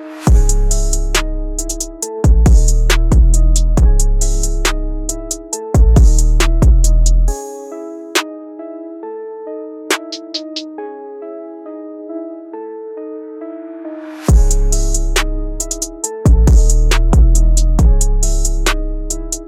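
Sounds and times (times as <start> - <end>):
hard dark beat: 0.3 - 7.4, 14.3 - 19.4.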